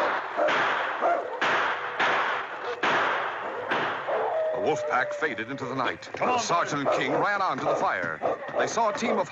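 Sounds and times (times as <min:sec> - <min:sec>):
loud gunshot blasts: 0:00.0 - 0:04.1
speech: 0:04.6 - 0:09.3.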